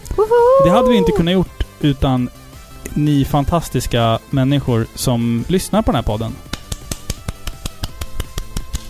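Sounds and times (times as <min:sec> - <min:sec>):
speech: 0:00.2 - 0:06.5
rhythmic hand claps: 0:06.4 - 0:08.8.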